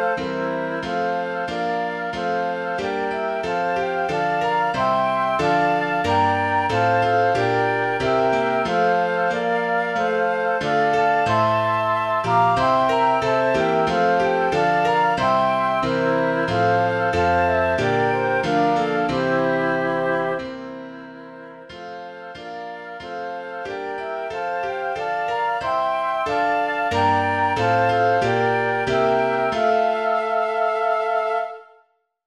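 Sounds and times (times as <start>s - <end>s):
piano at 92 bpm: 0.0s - 31.8s
flute at 92 bpm: 0.0s - 31.9s.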